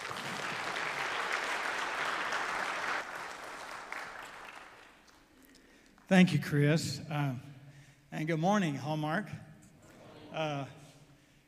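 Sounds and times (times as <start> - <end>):
audience applause: 0.0 - 5.1
speech: 6.1 - 7.5, 8.1 - 9.5, 10.3 - 10.8.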